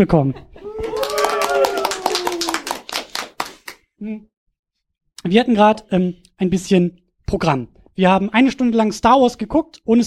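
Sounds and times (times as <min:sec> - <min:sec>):
speech: 0:00.0 - 0:00.6, 0:04.0 - 0:04.3, 0:05.2 - 0:10.0
live audience applauding: 0:00.6 - 0:03.8.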